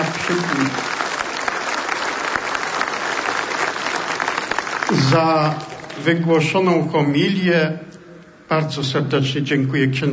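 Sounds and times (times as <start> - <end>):
audience applause: 0.0 - 6.1
speech: 5.0 - 7.9, 8.5 - 10.1.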